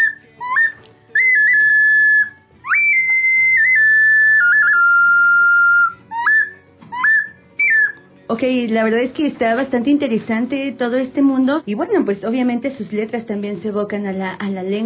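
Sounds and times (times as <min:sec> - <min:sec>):
Aztec whistle instrument imitating bird calls: 0:00.0 - 0:08.0
speech: 0:08.3 - 0:14.8.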